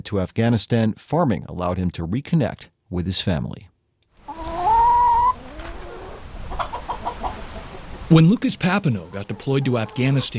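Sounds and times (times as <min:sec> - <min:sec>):
speech: 0:00.0 - 0:03.7, 0:08.1 - 0:10.3
chicken squawking at a poultry farm in Highgate Springs: 0:04.2 - 0:08.1, 0:09.0 - 0:10.3
chickens clucking at a poultry farm in Highgate Springs: 0:04.2 - 0:10.3.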